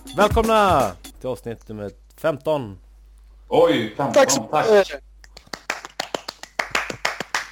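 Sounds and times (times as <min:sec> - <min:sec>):
speech: 0:00.2 - 0:02.8, 0:03.5 - 0:05.1
hands clapping: 0:05.2 - 0:07.4.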